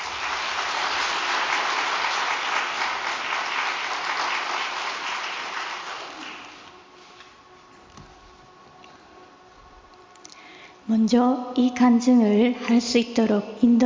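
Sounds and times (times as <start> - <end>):
audience applause: 0.0 - 6.8
speech: 10.9 - 13.8.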